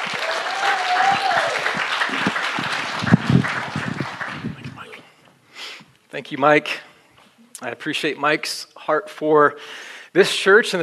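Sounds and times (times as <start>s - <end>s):
church congregation applause welcoming a speaker: 0.0s - 5.0s
speech: 6.2s - 6.9s, 7.6s - 10.8s.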